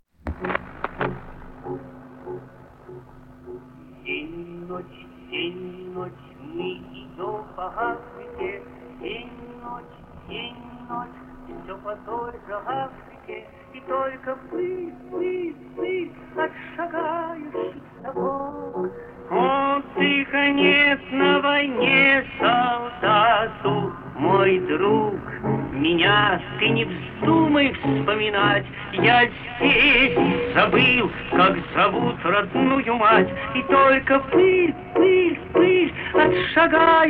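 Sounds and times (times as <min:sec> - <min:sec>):
person singing a French soldier's song: 0:04.0 - 0:37.0.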